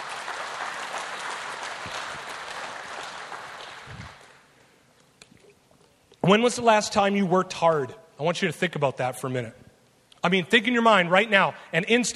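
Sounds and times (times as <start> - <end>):
audience applause: 0.0 - 4.5
speech: 1.8 - 2.2, 6.3 - 9.6, 10.2 - 12.1.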